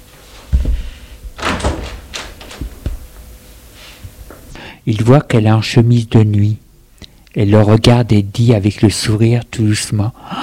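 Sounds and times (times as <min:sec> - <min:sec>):
door being opened: 0:01.3 - 0:03.3
speech: 0:04.8 - 0:06.6, 0:07.4 - 0:10.4.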